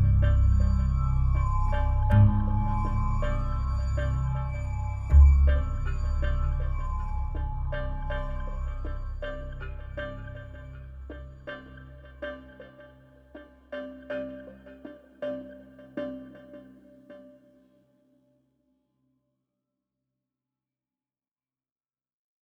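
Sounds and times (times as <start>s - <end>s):
suspense music with pizzicato: 0.0s - 17.4s.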